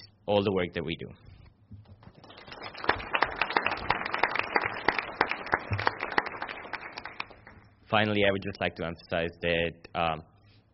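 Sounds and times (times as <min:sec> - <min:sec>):
speech: 0:00.3 - 0:01.4, 0:07.9 - 0:10.3
audience applause: 0:02.1 - 0:07.6.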